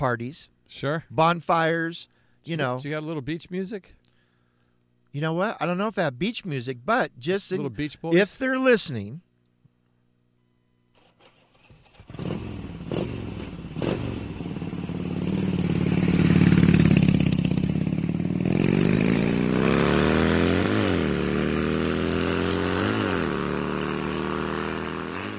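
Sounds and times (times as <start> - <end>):
speech: 0.0 - 4.0, 5.1 - 9.2
motor tricycle engine revving hard: 11.0 - 25.3.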